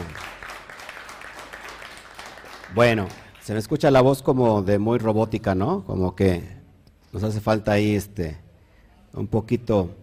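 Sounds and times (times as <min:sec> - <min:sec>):
crowd applause: 0:00.0 - 0:03.5
speech: 0:02.8 - 0:08.4, 0:09.1 - 0:10.0.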